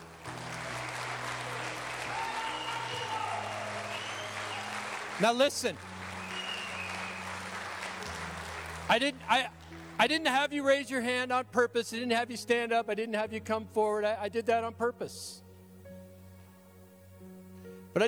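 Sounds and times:
audience applauding: 0.0 - 10.3
whistling or cheering: 0.9 - 8.6
speech: 5.2 - 5.9, 8.9 - 15.4.

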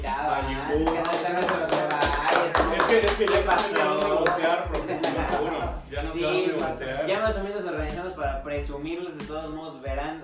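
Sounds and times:
applause: 0.8 - 5.5
speech: 5.9 - 10.2.

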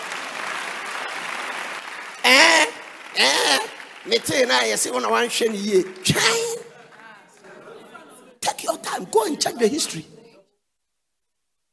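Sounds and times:
audience applause: 0.0 - 7.7
speech: 3.2 - 6.6, 9.3 - 10.2.

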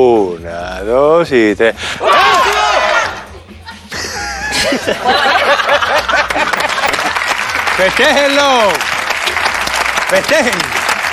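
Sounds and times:
speech: 0.0 - 2.6, 4.6 - 6.1, 7.8 - 9.0, 10.1 - 10.8
group of people shouting together: 2.0 - 3.2
laughter: 3.6 - 7.5.

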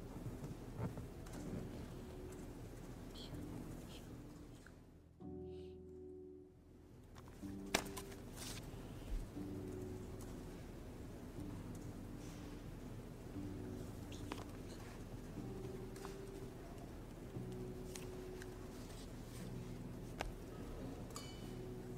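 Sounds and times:
low murmur in the Yale library: 0.0 - 21.9.

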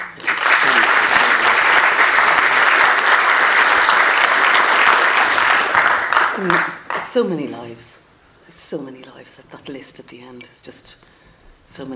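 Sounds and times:
audience applause: 0.0 - 7.0
speech: 6.4 - 8.0, 8.7 - 11.9.

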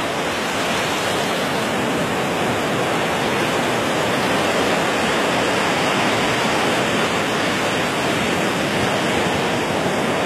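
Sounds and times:
summer sea waves rushing: 0.0 - 10.2.

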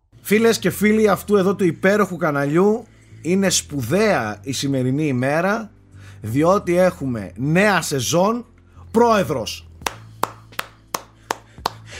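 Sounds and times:
speech: 0.3 - 10.0
one person clapping hands: 9.8 - 11.9.

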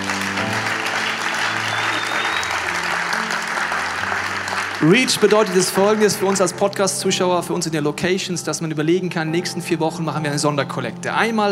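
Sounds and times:
audience applause: 0.0 - 7.1
speech: 4.8 - 11.5.

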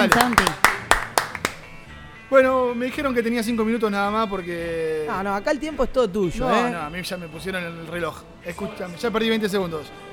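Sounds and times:
speech: 0.0 - 0.6, 2.3 - 10.1
audience applause: 0.0 - 1.6.

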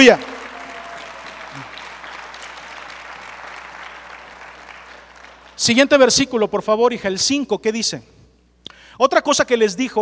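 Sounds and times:
speech: 0.0 - 0.3, 5.6 - 8.1, 9.0 - 9.9
audience applauding: 0.0 - 5.6.

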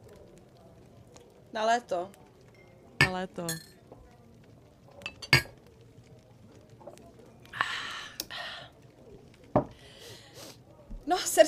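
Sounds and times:
speech: 1.5 - 2.2, 3.1 - 3.7, 11.1 - 11.4
glasses clinking in a toast: 2.6 - 3.8.

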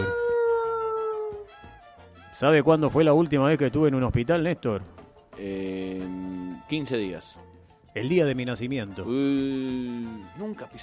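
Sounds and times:
person imitating an ambulance siren with voice: 0.0 - 1.5
speech: 2.4 - 10.8.

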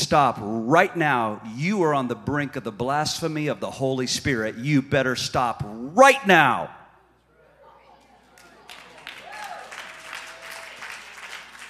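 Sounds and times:
speech: 0.0 - 6.8
audience clapping: 8.3 - 11.6.

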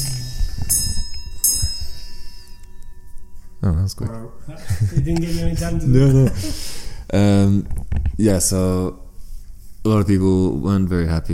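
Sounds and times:
clock chiming: 0.0 - 5.3
speech: 3.6 - 9.0, 9.8 - 11.3
laughter: 4.5 - 6.6.

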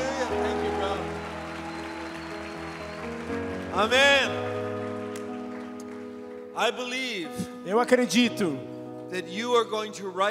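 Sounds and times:
audience clapping: 0.0 - 6.6
speech: 3.8 - 4.5, 6.6 - 10.2.

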